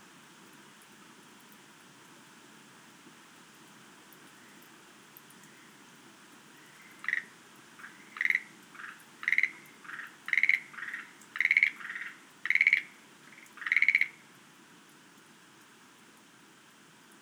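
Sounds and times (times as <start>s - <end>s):
Schlegel's green tree frog pulsed rattle: 7.9s - 14.1s.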